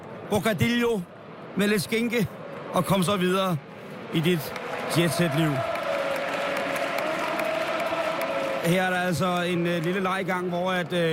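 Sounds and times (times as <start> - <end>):
speech: 0.3 - 5.7, 8.6 - 11.1
stadium crowd chanting: 3.9 - 9.2.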